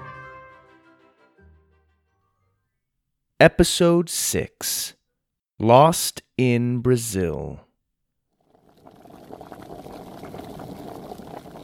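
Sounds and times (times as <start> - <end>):
speech: 3.4 - 5.0, 5.6 - 7.6
pot boiling and bubbling on stove: 8.5 - 11.6.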